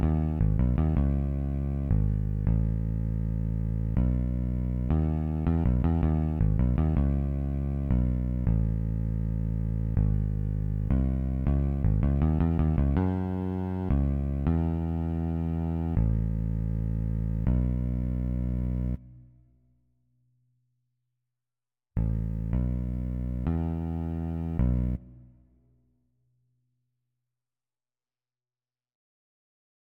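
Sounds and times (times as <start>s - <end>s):
town bass sound: 0.0s - 19.3s, 22.0s - 25.4s.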